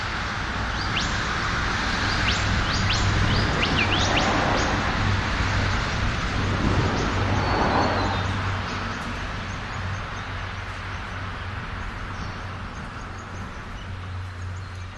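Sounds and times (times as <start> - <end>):
traffic passing a rest area in Australia: 0.0 - 14.9
wind in trees in Australia: 0.0 - 14.9
birds at a rest area in Australia: 0.6 - 5.0, 5.8 - 14.9.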